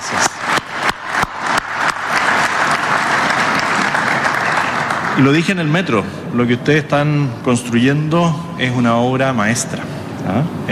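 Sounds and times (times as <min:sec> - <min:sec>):
audience applause for the workers: 0:00.0 - 0:05.8
speech: 0:05.2 - 0:10.7.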